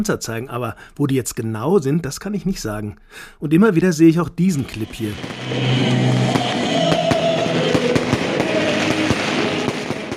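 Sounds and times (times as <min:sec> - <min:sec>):
speech: 0:00.0 - 0:06.6
fireworks at a celebration in Donetsk: 0:04.8 - 0:10.1.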